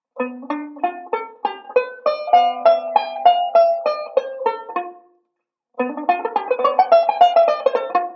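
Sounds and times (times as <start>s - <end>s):
banjo playing a ii V pattern: 0.0s - 5.2s, 5.8s - 8.1s.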